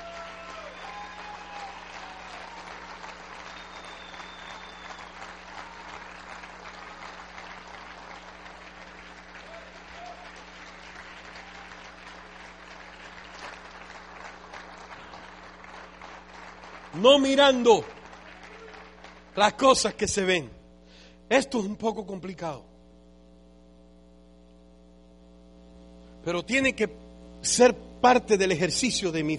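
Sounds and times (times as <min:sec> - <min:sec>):
faint voices and cheers: 0:00.0 - 0:07.1, 0:09.4 - 0:10.5, 0:11.2 - 0:12.0, 0:18.2 - 0:19.1
audience applause: 0:00.0 - 0:19.9
speech: 0:17.0 - 0:17.9, 0:19.4 - 0:20.6, 0:21.3 - 0:22.7, 0:26.2 - 0:29.3.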